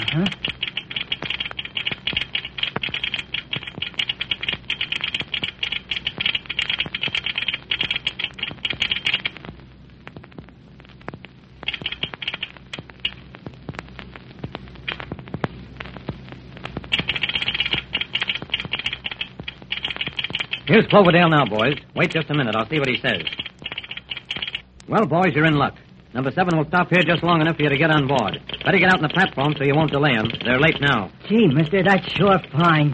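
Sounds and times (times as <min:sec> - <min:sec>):
telegraph key clicking: 0:00.0 - 0:09.3, 0:11.7 - 0:13.2, 0:16.9 - 0:24.6, 0:28.0 - 0:30.8
speech: 0:00.2 - 0:00.4, 0:20.7 - 0:23.4, 0:24.9 - 0:32.9.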